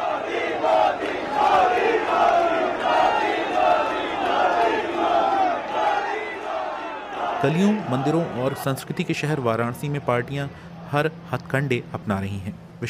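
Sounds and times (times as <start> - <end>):
crowd chanting slogans at road show: 0.0 - 8.7
speech: 7.4 - 12.8.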